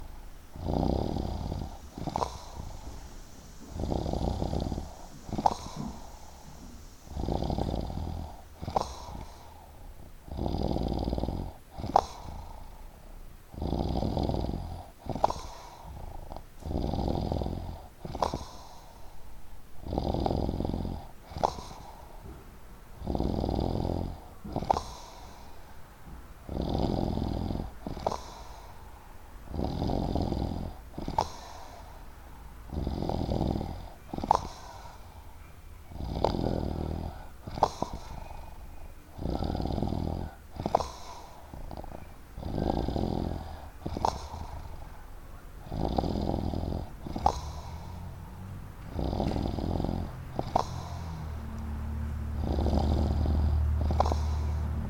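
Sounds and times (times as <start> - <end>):
person snoring: 0.0 - 12.9, 13.5 - 19.1, 19.8 - 22.2, 23.0 - 25.7, 26.5 - 28.8, 29.5 - 32.0, 32.7 - 35.3, 35.9 - 45.0, 45.6 - 54.8.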